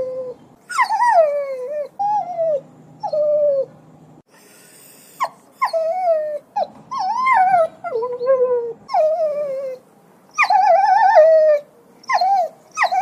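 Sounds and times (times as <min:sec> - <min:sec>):
dog whining and yelping: 0:00.0 - 0:03.7, 0:05.2 - 0:12.9.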